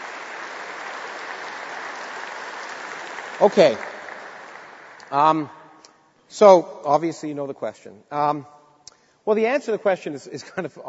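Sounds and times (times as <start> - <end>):
audience applause: 0.0 - 5.2
speech: 3.4 - 3.9, 5.1 - 5.6, 6.3 - 8.6, 9.3 - 10.8.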